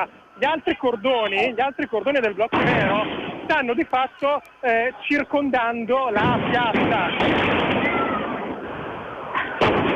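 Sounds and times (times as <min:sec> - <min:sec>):
speech: 0:00.0 - 0:07.7
crowd noise: 0:00.0 - 0:09.9
firecracker bangs in a square: 0:06.2 - 0:08.1, 0:09.4 - 0:09.9.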